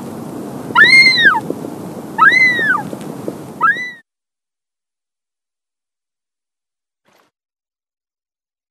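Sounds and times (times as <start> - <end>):
Wandering albatross nasal mewing cries: 0.7 - 1.4, 2.2 - 2.9, 3.6 - 4.0.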